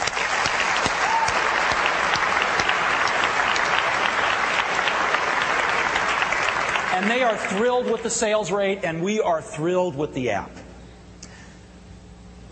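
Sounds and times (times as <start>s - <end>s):
audience applause: 0.0s - 8.5s
speech: 7.0s - 10.6s.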